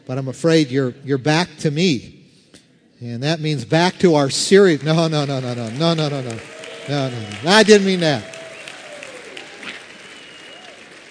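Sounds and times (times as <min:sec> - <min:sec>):
speech: 0:00.1 - 0:02.2, 0:03.0 - 0:08.4
audience applause: 0:04.5 - 0:11.1
faint voices and whistles: 0:08.4 - 0:10.9.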